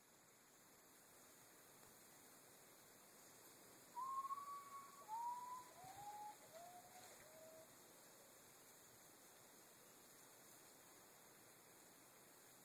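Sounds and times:
urutau song: 4.0 - 7.7.

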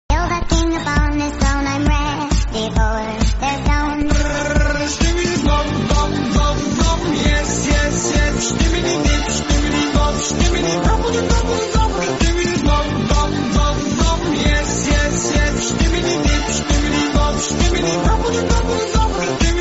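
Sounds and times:
phonk music: 0.1 - 19.5.

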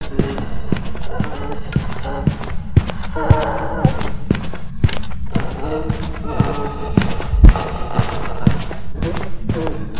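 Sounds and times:
random footsteps: 0.0 - 9.9.

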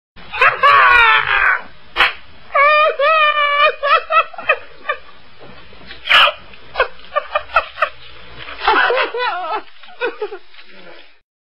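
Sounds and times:
crazy laughter: 0.3 - 1.7, 2.5 - 5.1, 6.1 - 10.5.

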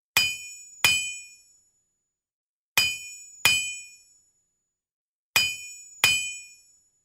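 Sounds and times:
blacksmith hammering: 0.2 - 1.4, 2.8 - 4.0, 5.4 - 6.6.

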